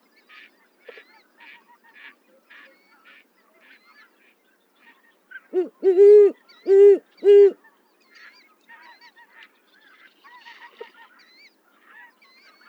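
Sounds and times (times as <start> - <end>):
owl: 5.6 - 7.6.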